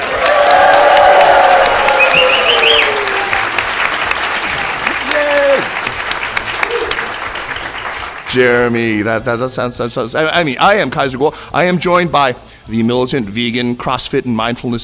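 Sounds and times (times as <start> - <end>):
live audience cheering and applauding: 0.0 - 8.5
speech: 8.4 - 14.8.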